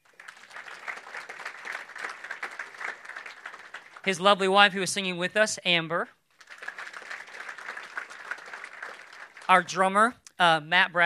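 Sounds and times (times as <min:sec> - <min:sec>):
audience applause at a worship gathering: 0:00.0 - 0:04.1, 0:06.4 - 0:09.6
speech: 0:04.0 - 0:06.2, 0:09.5 - 0:11.0.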